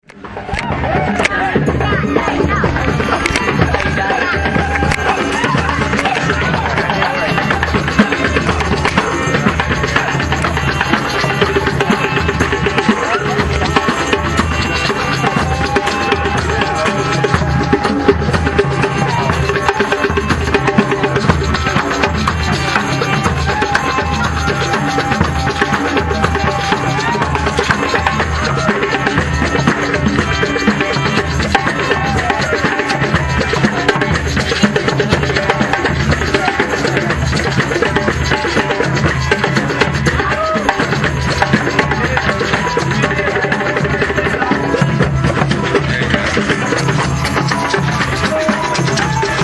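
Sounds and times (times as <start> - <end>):
congas: 0.0 - 49.4.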